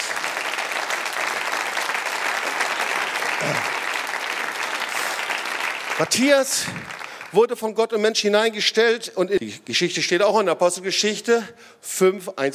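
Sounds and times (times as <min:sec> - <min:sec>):
audience applause: 0:00.0 - 0:07.4
speech: 0:06.0 - 0:12.5.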